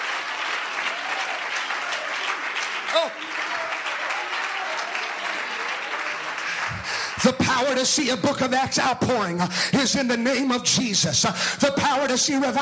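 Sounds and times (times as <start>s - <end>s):
audience clapping: 0.0s - 9.4s
speech: 3.0s - 3.4s, 7.2s - 12.6s.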